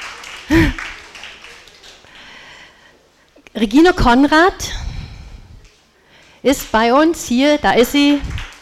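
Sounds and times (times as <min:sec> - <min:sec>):
audience applause: 0:00.0 - 0:02.6, 0:08.3 - 0:08.6
speech: 0:03.6 - 0:04.8, 0:06.4 - 0:08.4.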